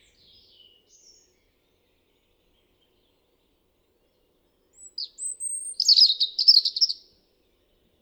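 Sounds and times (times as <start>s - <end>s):
European robin Erithacus rubecula singing: 4.8s - 7.0s.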